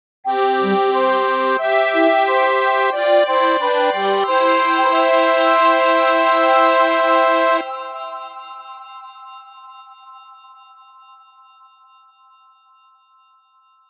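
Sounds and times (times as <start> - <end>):
ending jingle: 0.3 - 9.0.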